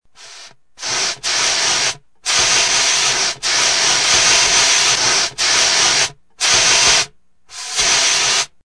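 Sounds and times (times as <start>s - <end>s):
fire extinguisher spraying: 0.2s - 8.6s.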